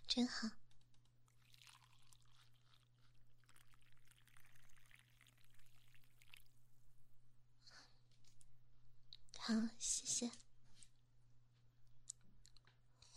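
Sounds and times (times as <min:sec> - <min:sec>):
speech: 0:00.1 - 0:00.6, 0:09.5 - 0:10.5
coffee poured into a cup: 0:01.3 - 0:06.7.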